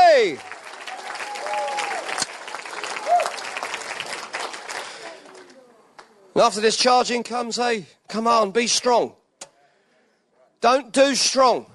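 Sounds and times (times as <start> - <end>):
scattered cheers: 0.0 - 3.8
audience clapping in praise: 0.0 - 5.6
speech: 0.2 - 0.5, 6.4 - 9.2, 10.6 - 11.7.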